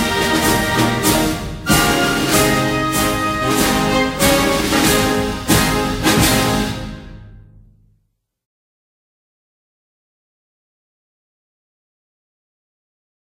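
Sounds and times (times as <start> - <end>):
instrumental national anthem: 0.0 - 7.8.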